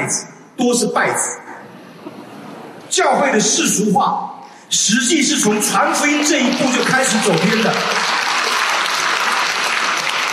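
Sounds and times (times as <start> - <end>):
speech: 0.1 - 1.4, 2.9 - 8.1
church audience applauding during a sermon: 5.5 - 10.3.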